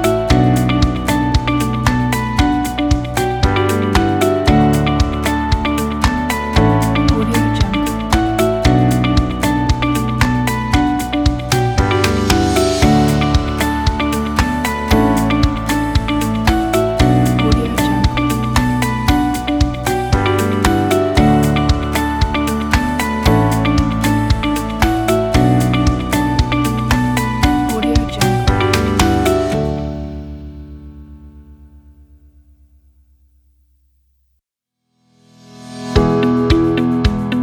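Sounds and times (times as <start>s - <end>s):
emotional motivational corporate music: 0.0s - 31.0s, 35.8s - 37.4s.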